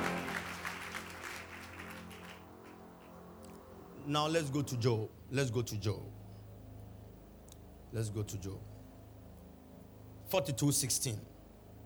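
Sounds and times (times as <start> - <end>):
audience clapping: 0.0 - 3.2
speech: 4.0 - 6.2, 7.9 - 8.7, 10.3 - 11.3.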